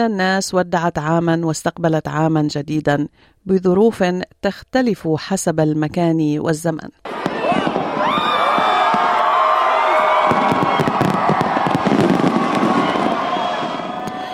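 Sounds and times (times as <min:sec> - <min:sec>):
speech: 0:00.0 - 0:07.3
crowd cheering and shouting: 0:07.0 - 0:14.3
fireworks bangs and crackles: 0:07.0 - 0:14.3.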